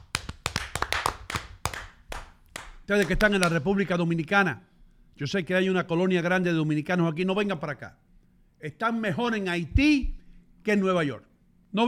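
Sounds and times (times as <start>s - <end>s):
scattered hand claps: 0.0s - 4.0s
speech: 2.9s - 11.8s.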